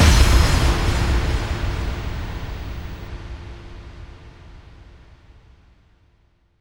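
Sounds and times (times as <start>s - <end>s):
bass drum FX kicks: 0.0s - 3.1s.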